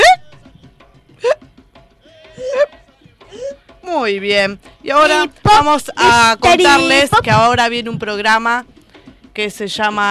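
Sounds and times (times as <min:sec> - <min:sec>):
hiccup: 0:00.0 - 0:00.3, 0:01.2 - 0:01.4
speech: 0:04.0 - 0:08.7, 0:09.4 - 0:10.0.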